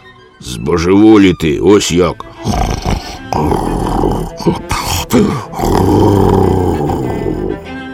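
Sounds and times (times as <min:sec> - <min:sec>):
speech: 0:00.4 - 0:06.7
loud rough snoring: 0:02.3 - 0:07.7.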